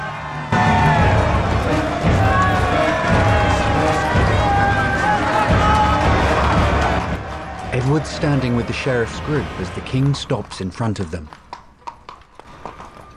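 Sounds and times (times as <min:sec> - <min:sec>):
large street crowd cheering and shouting at royal procession: 0:00.0 - 0:10.5
speech: 0:07.9 - 0:11.5.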